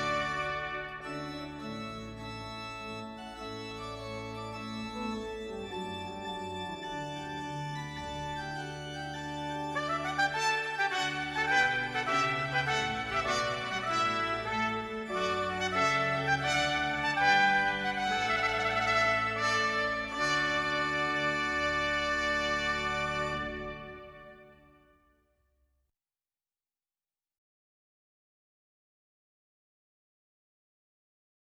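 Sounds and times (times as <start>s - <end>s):
trumpet piece: 0.0s - 25.1s.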